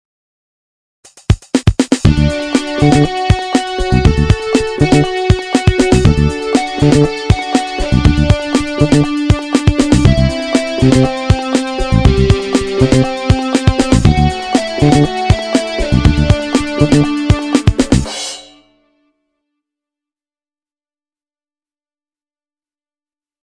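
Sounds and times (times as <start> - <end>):
daily vlog music: 1.1 - 18.1.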